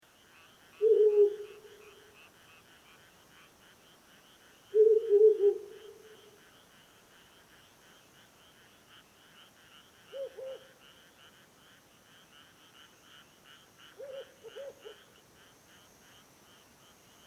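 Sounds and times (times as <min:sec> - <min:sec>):
pulsing chorus of frogs or insects: 0:00.1 - 0:17.2
owl hooting: 0:00.8 - 0:01.9, 0:04.8 - 0:06.2.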